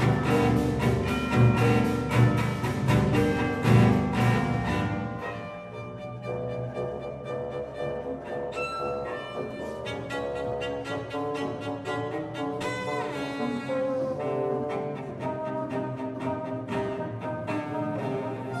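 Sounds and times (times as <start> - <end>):
harpsichord: 0.0 - 11.0
cello: 0.0 - 18.5
double bass: 0.0 - 18.5
timpani: 0.0 - 18.5.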